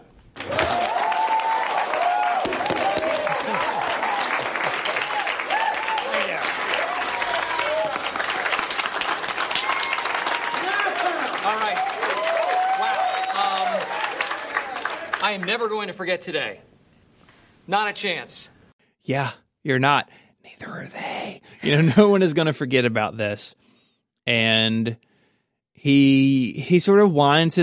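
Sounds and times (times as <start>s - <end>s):
audience applauding to welcome Michael Scott: 0.3s - 15.9s
cheering and shouting voices: 0.4s - 8.5s, 9.5s - 15.2s
speech: 15.4s - 16.7s, 17.7s - 20.0s, 21.6s - 23.6s, 24.3s - 25.1s, 25.8s - 27.6s.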